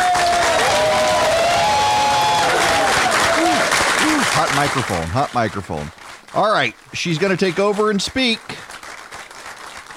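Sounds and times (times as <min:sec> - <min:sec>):
crowd whoops and shouts: 0:00.0 - 0:04.2
crowd clapping welcoming Kelly Loeffler: 0:00.0 - 0:09.9
speech: 0:04.6 - 0:08.7.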